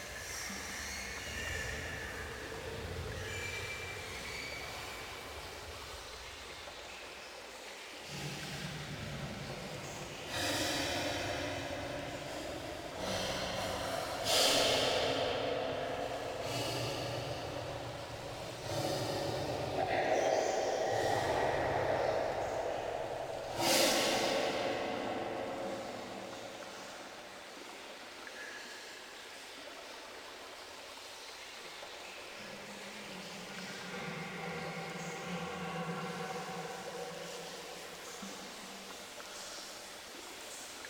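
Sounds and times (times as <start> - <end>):
rain ambience: 0.0 - 40.8.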